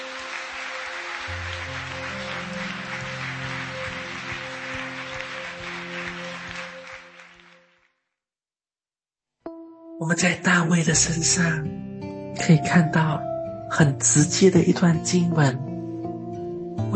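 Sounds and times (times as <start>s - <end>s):
audience applause: 0.0s - 7.9s
speech: 10.0s - 15.7s.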